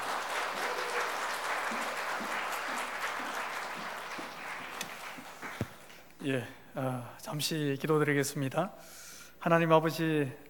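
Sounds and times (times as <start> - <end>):
big round of applause: 0.0 - 6.0
speech: 6.2 - 10.4.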